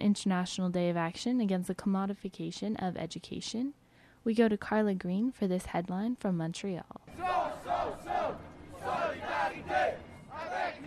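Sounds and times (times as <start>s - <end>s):
speech: 0.0s - 10.0s
student protesters chanting at a march in Montreal: 7.1s - 10.8s.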